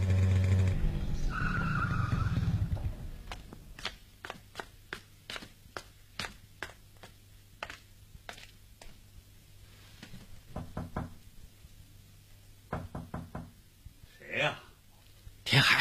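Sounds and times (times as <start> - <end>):
motorcycle speeding through streets and stopping: 0.0 - 3.4.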